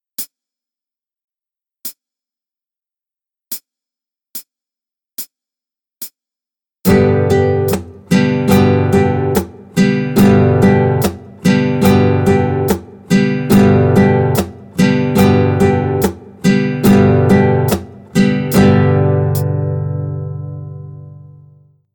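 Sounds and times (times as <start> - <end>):
practice piece in slow tempo: 6.9 - 21.7.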